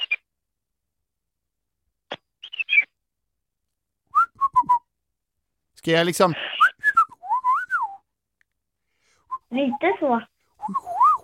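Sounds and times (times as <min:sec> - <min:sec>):
person whistling parrot chatter imitation: 0:04.1 - 0:04.9, 0:06.5 - 0:08.1, 0:10.6 - 0:11.2
speech: 0:05.8 - 0:06.5, 0:09.6 - 0:10.9.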